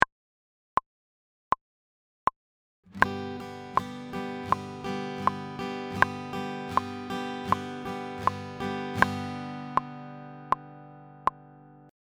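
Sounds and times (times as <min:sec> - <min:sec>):
guitar: 0:02.9 - 0:12.0.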